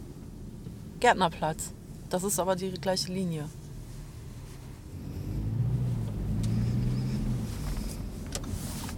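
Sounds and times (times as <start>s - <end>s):
speech: 1.0s - 3.6s
city bus driving past: 4.9s - 8.8s.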